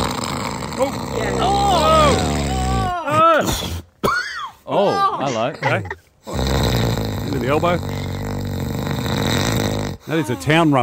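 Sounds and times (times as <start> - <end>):
loud snoring: 0.0 - 3.0, 6.2 - 10.6
speech: 0.8 - 1.7, 4.7 - 6.6, 7.3 - 8.2, 10.1 - 10.8.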